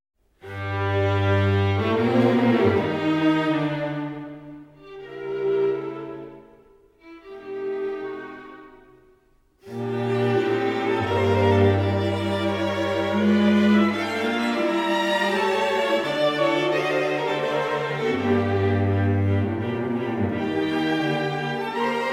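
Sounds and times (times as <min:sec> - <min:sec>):
string quintet playing: 0:00.4 - 0:22.1.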